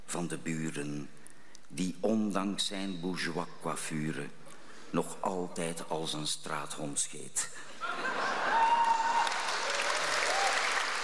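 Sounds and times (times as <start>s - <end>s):
speech: 0.1s - 8.1s
audience applause after a poetry reading: 8.2s - 11.0s
faint whistle or cheer: 8.5s - 10.8s.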